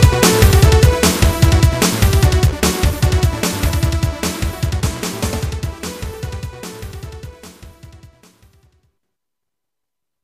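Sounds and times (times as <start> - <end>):
rock music: 0.0 - 7.6.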